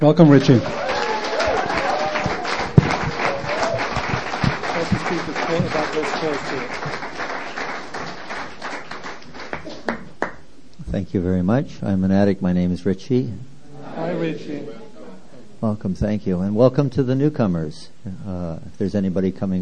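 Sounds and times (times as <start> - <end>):
speech: 0.0 - 1.1, 11.1 - 13.5, 14.1 - 14.8, 15.6 - 19.6
audience applause greeting a speaker at a Swedish-hosted meeting: 0.0 - 10.4.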